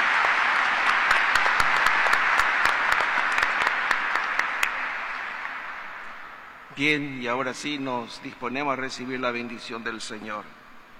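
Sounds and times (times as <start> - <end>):
audience applauding: 0.0 - 6.4
speech: 6.8 - 10.6.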